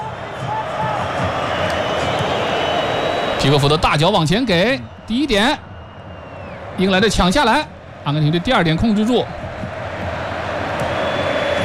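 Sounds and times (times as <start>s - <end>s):
Argentina football fans applauding and shouting: 0.0s - 11.6s
speech: 3.4s - 5.7s, 6.8s - 9.6s.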